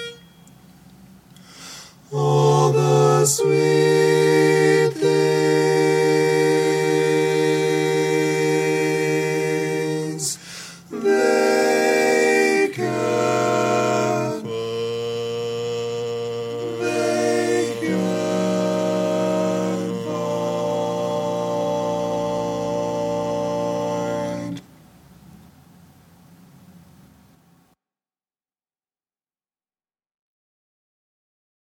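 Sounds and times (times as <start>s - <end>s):
barbershop tags lead voice: 2.1s - 24.7s.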